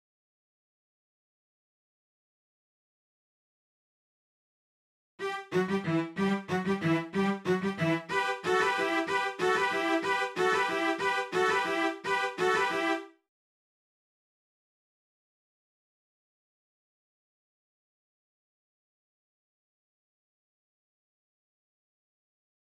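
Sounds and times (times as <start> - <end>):
cellos through Marshall JVM: 5.2 - 13.1.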